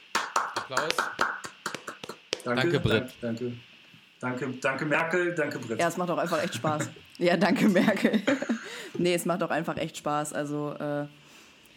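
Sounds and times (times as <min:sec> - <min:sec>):
brief hand clapping applause: 0:00.0 - 0:02.5
speech: 0:00.7 - 0:01.4, 0:02.4 - 0:11.2
laughter: 0:06.2 - 0:08.8.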